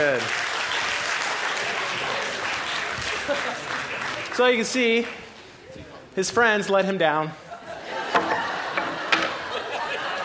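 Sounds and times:
round of applause: 0.0 - 5.3
laughter: 1.5 - 4.3, 7.4 - 10.2
speech: 4.4 - 5.2, 6.2 - 7.4.

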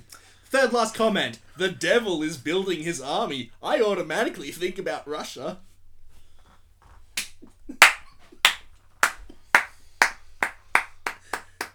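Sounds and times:
speech: 0.5 - 5.7
person clapping hands: 7.2 - 11.7.

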